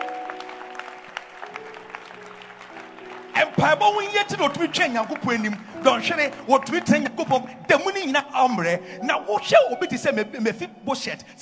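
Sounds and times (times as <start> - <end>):
audience clapping hands: 0.0 - 8.3
speech: 3.4 - 11.4.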